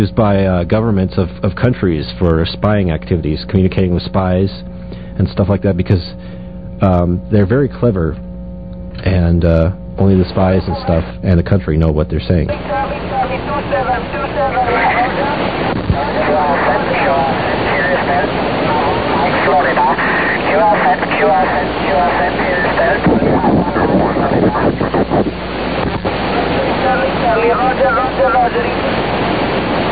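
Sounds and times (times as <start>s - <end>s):
speech: 0.0s - 8.3s, 9.0s - 13.0s
radio meteor scatter static: 9.1s - 11.5s, 12.3s - 29.9s.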